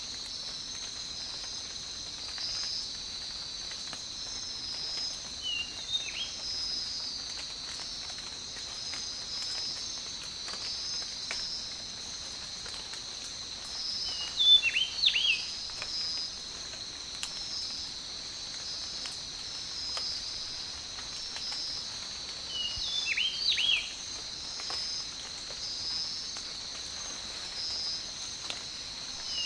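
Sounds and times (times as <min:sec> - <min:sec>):
tropical rain: 0:00.0 - 0:29.4.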